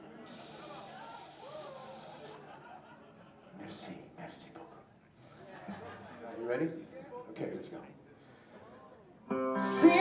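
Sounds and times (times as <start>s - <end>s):
stage steam machine hissing spray: 0.3s - 2.4s
laughter: 2.2s - 3.8s, 5.3s - 6.4s
speech: 3.7s - 4.7s, 6.4s - 8.0s.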